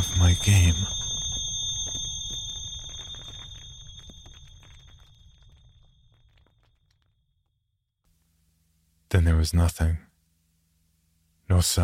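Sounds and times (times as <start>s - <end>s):
harsh electronic beeping: 0.0s - 5.1s
speech: 0.2s - 1.0s, 9.1s - 10.1s, 11.5s - 11.8s.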